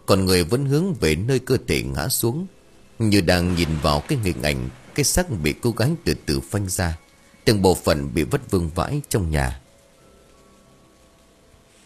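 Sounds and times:
heavy rain falling outdoors: 0:00.0 - 0:11.8
speech: 0:00.1 - 0:09.6.

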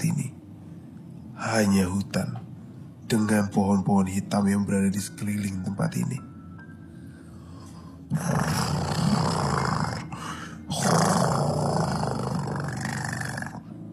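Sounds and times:
speech: 0:01.4 - 0:02.4, 0:03.1 - 0:06.3, 0:08.1 - 0:08.6
roaring: 0:08.1 - 0:13.7.

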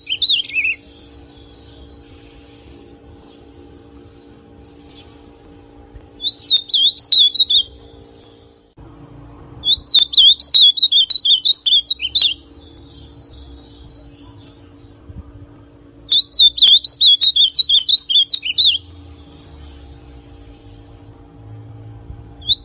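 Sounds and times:
ultramarine grosbeak song: 0:00.0 - 0:03.4, 0:06.2 - 0:08.4, 0:09.6 - 0:14.6, 0:16.0 - 0:19.9, 0:22.4 - 0:22.6.

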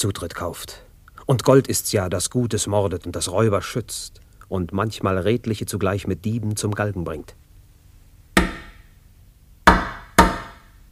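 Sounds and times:
speech: 0:00.0 - 0:07.4
knocking on a door: 0:09.7 - 0:10.6.

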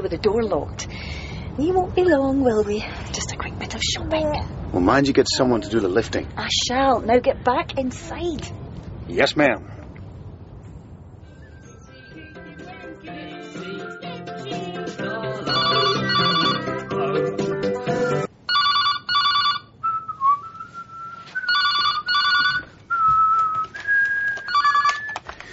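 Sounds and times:
speech: 0:00.0 - 0:09.8
high whistled tune: 0:11.3 - 0:12.7, 0:19.8 - 0:21.6, 0:22.9 - 0:25.2
music: 0:11.3 - 0:18.3
telephone bell ringing: 0:15.4 - 0:16.8, 0:18.5 - 0:19.7, 0:21.5 - 0:22.7, 0:24.5 - 0:25.0.

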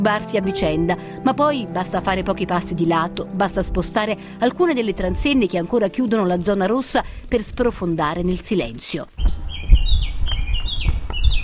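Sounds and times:
speech: 0:00.0 - 0:09.4
birds chirping in ruined streets of a red zone: 0:09.0 - 0:11.4.

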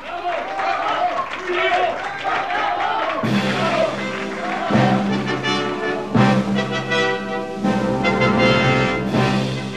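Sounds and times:
crowd applauding and cheering: 0:00.0 - 0:09.6
loud musical chords: 0:03.2 - 0:09.7.

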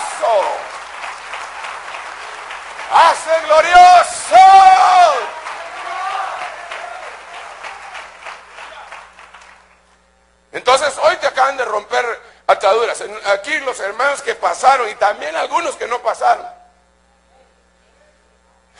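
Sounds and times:
audience applauding loudly: 0:00.0 - 0:09.9
speech: 0:03.0 - 0:04.7, 0:11.7 - 0:16.6.

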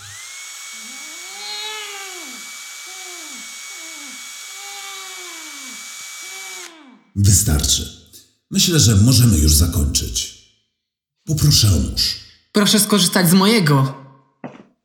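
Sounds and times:
high-pitched drill boring through a cheek: 0:00.0 - 0:06.9
speech: 0:07.2 - 0:10.4, 0:11.3 - 0:14.0.

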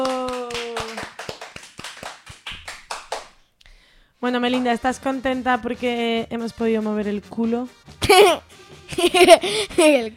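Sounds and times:
audience clapping in even rhythmic beats: 0:00.0 - 0:03.4
speech: 0:04.2 - 0:10.1.

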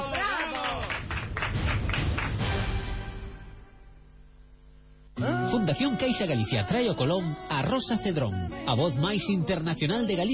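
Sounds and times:
studio applause: 0:00.0 - 0:02.8
speech: 0:05.2 - 0:10.3.

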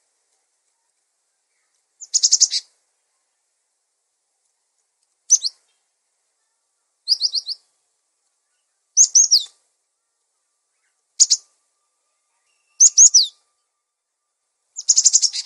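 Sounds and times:
songbird twittering: 0:01.5 - 0:02.7, 0:05.3 - 0:07.7, 0:08.4 - 0:13.7, 0:14.8 - 0:15.4.

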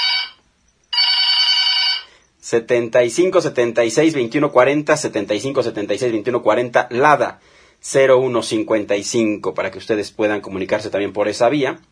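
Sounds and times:
telephone ringing: 0:00.0 - 0:02.2
speech: 0:02.5 - 0:11.9.

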